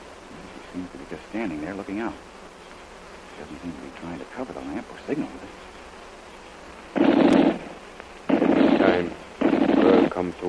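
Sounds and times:
speech: 0.8 - 2.3, 3.4 - 5.8, 10.2 - 10.4
machine-gun fire, radio drama sound effect: 7.0 - 10.3.

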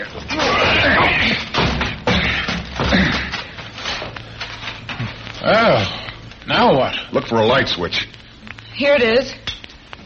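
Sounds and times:
door being broken down: 0.2 - 4.0
speech: 6.6 - 8.2, 8.8 - 9.4.

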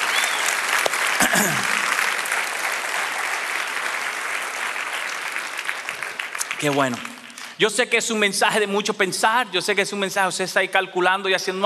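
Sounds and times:
audience applause: 0.0 - 7.6
speech: 1.3 - 1.8, 6.6 - 11.6.

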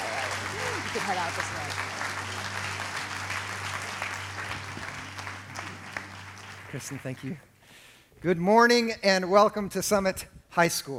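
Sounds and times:
audience applause at a high school gathering: 0.0 - 7.4
speech: 1.0 - 1.8, 6.7 - 7.5, 8.2 - 10.9.

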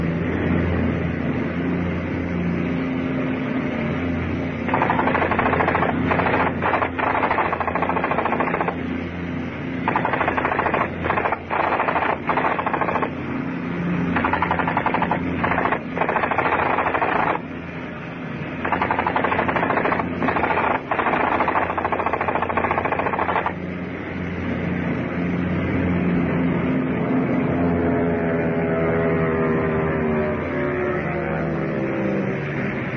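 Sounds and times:
steady low mechanical rumble: 0.0 - 32.0
machine gun fire: 4.7 - 8.8, 9.8 - 13.2, 14.1 - 17.5, 18.6 - 23.6.

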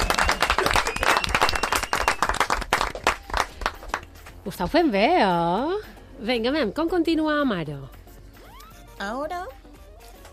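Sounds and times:
strong applause from audience: 0.0 - 4.1
speech: 4.4 - 8.0, 9.0 - 9.5.

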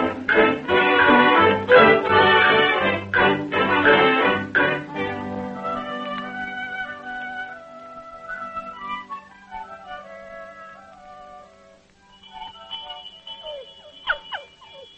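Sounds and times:
farm dinner bell ringing: 0.0 - 5.3, 12.0 - 14.9.

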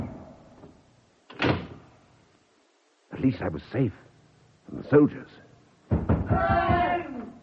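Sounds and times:
heavy oak door slamming shut: 1.3 - 1.8
speech: 3.2 - 4.1, 4.7 - 5.4, 6.3 - 6.8.

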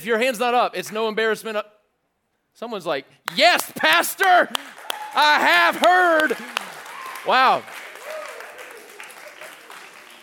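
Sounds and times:
speech: 0.0 - 1.8, 2.6 - 6.6, 7.2 - 7.8
crowd applauding: 3.3 - 10.2.

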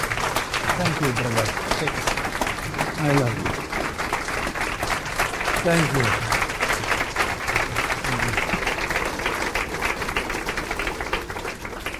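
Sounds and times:
audience applause: 0.0 - 11.9
speech: 0.8 - 2.2, 3.0 - 3.6, 5.6 - 6.4.

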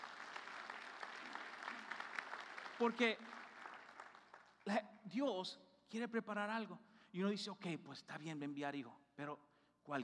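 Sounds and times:
church congregation applauding during a Spanish-language sermon: 0.0 - 4.8
speech: 2.8 - 3.4, 4.7 - 10.0.

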